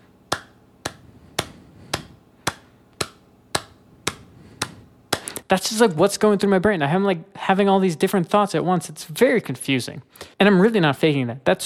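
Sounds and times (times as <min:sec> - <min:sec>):
rhythmic hand claps: 0:00.3 - 0:05.5
speech: 0:05.5 - 0:11.6.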